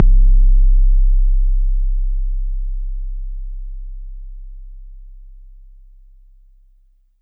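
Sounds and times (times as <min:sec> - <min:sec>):
bass drum: 0:00.0 - 0:06.4.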